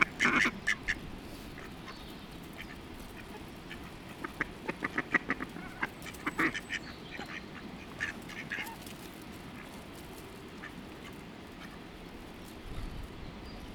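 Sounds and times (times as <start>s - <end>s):
duck quacking: 0.0s - 2.0s, 2.6s - 8.8s
steady low background noise: 0.0s - 13.7s.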